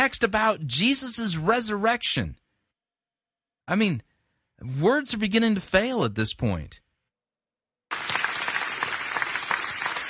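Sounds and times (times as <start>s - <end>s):
speech: 0.0s - 2.4s, 3.7s - 6.8s
people clapping in a sermon recording: 7.9s - 10.0s.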